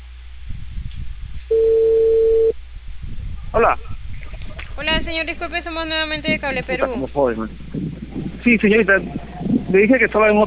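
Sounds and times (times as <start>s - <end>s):
low rumble: 0.0s - 10.4s
telephone ringing tone on a call: 1.5s - 2.5s
speech: 3.6s - 3.9s, 5.1s - 10.4s.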